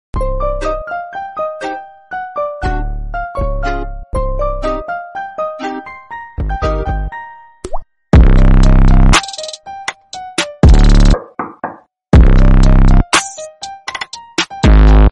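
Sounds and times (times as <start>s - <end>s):
Halloween bass music: 0.2s - 0.9s, 2.6s - 4.9s, 6.4s - 7.1s, 8.2s - 9.2s, 12.2s - 13.1s, 14.6s - 15.0s.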